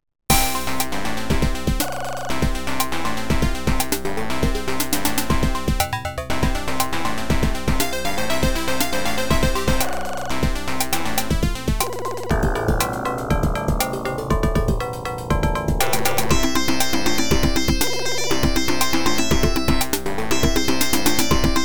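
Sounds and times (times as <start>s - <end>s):
AdLib OPL2 FM synth music: 0.3s - 21.6s.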